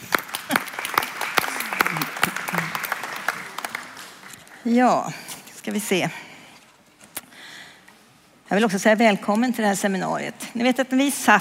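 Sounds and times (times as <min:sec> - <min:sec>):
audience applause: 0:00.0 - 0:04.6
speech: 0:04.6 - 0:06.2, 0:08.5 - 0:11.3.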